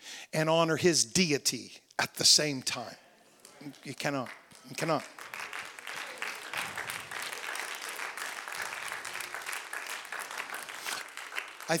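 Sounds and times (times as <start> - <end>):
speech: 0.3 - 3.0, 3.6 - 5.3
golf clap, polite quiet applause: 3.4 - 11.7.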